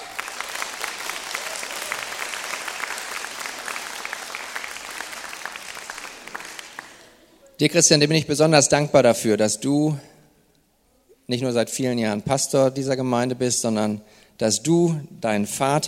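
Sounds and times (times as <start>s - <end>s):
audience applause: 0.0s - 7.3s
speech: 7.6s - 10.1s, 11.3s - 15.8s.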